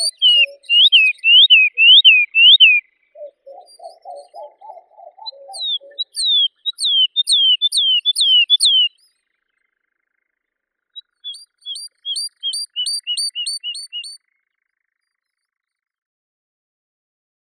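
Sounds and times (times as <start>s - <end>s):
woodlark Lullula arborea singing: 0.0s - 9.1s, 11.2s - 14.2s.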